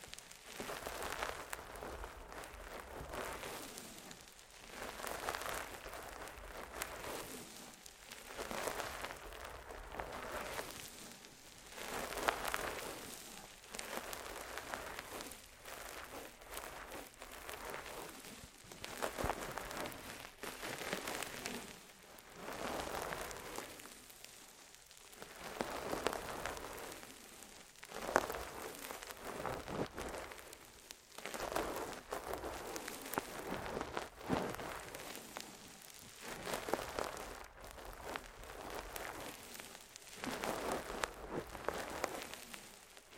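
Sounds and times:
intense ear massage crackling rubbing: 0.0s - 43.1s.

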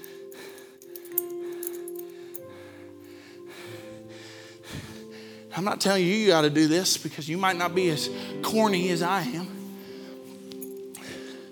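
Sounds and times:
keys jingling: 0.0s - 2.5s, 10.3s - 11.2s
speech: 5.6s - 9.6s.

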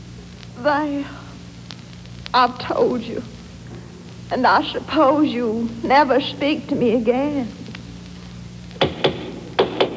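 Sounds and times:
speech: 0.6s - 1.2s, 2.3s - 3.4s, 4.3s - 7.6s
knocking on a door: 8.8s - 9.9s.

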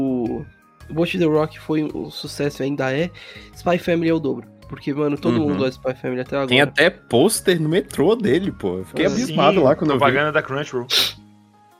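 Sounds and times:
speech: 0.3s - 11.2s
person sneezing: 10.9s - 11.2s.

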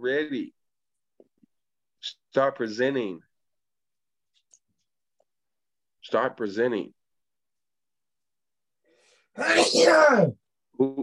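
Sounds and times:
speech: 0.0s - 0.6s, 2.0s - 3.3s, 6.1s - 7.0s, 9.4s - 11.0s
loud sneeze: 9.4s - 10.4s.

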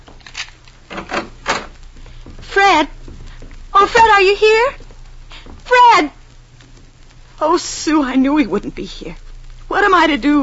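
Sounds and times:
key unlocking a door: 0.2s - 1.7s
speech: 2.6s - 3.0s, 3.8s - 4.8s, 5.7s - 6.2s, 7.4s - 10.4s.

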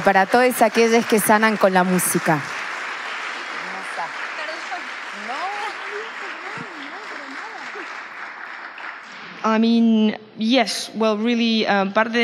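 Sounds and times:
speech: 0.0s - 2.5s, 9.4s - 12.2s
audience applauding: 0.0s - 9.4s.

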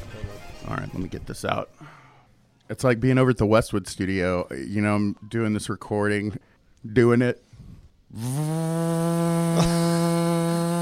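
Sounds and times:
speech: 0.7s - 2.0s, 2.7s - 7.5s, 8.1s - 10.0s
vacuum cleaner running: 8.2s - 10.8s.

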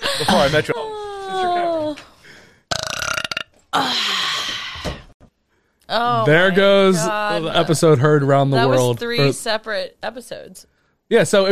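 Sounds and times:
speech: 0.2s - 2.1s, 5.9s - 11.5s
person burping: 2.7s - 4.0s.

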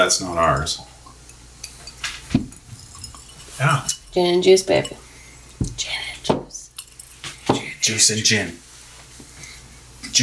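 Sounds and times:
speech: 0.0s - 0.9s, 3.6s - 5.0s, 7.9s - 8.6s
glasses clinking in a toast: 0.6s - 5.6s, 6.3s - 7.6s.

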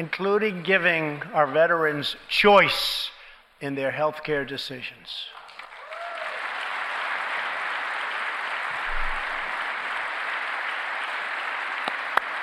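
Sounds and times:
speech: 0.0s - 5.4s
audience applause: 5.4s - 12.4s.

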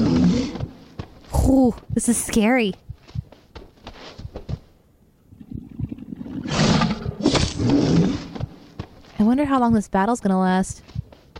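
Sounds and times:
video game bear growling and roaring: 0.0s - 1.6s, 5.3s - 8.7s
speech: 1.5s - 2.8s, 9.2s - 10.9s.

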